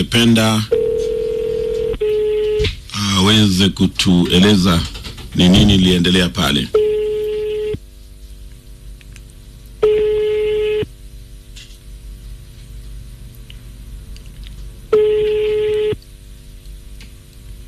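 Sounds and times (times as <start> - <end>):
speech: 0.0 - 0.8, 3.2 - 6.8
telephone ringback tones: 0.7 - 2.6, 9.8 - 10.9, 15.0 - 16.0.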